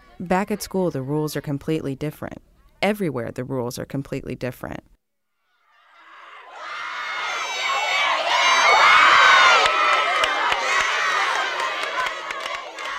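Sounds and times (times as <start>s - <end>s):
speech: 0.2s - 4.9s
children's teams cheering and shouting: 5.6s - 12.9s.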